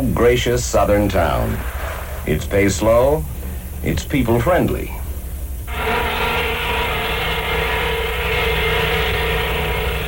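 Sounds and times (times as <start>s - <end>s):
speech: 0.0s - 5.0s
paper mill whistle: 5.7s - 10.0s.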